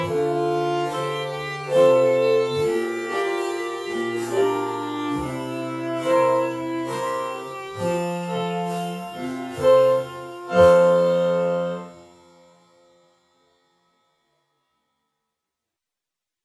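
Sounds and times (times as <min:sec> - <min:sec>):
slow Paris cafe music: 0:00.0 - 0:13.0.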